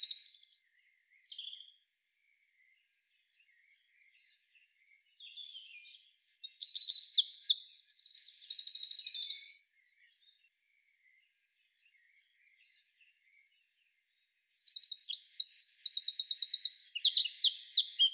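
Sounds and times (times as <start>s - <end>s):
Eurasian wren song: 0.0s - 1.8s, 5.2s - 10.3s, 14.5s - 18.1s.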